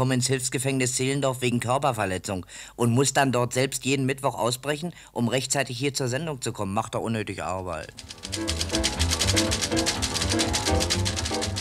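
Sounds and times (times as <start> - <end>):
speech: 0.0 - 11.5
typewriter played as an instrument: 7.8 - 11.5
piano playing: 8.0 - 11.5.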